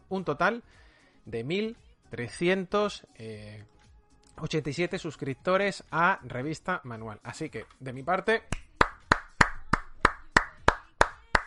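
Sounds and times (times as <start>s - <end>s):
speech: 0.1s - 3.8s, 4.4s - 8.6s
hand claps from one person applauding a magazine's subscribers: 8.5s - 11.4s.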